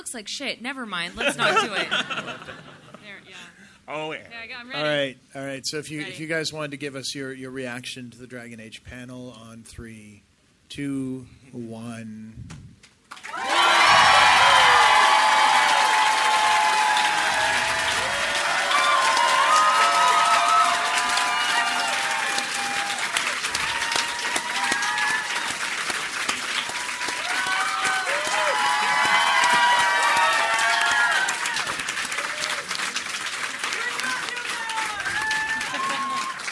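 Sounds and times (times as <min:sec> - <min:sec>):
speech: 0:00.1 - 0:12.7
laughter: 0:01.1 - 0:03.5, 0:35.3 - 0:36.4
audience clapping loudly: 0:13.1 - 0:36.4.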